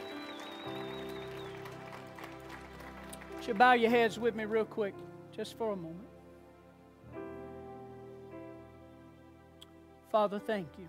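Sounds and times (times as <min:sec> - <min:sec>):
audience clapping hands: 0:00.0 - 0:04.3
speech: 0:03.4 - 0:06.1, 0:10.1 - 0:10.8.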